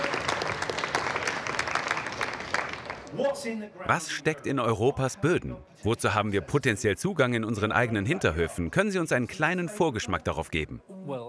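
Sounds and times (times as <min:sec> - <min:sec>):
audience applause: 0:00.0 - 0:03.2
speech: 0:03.2 - 0:11.2.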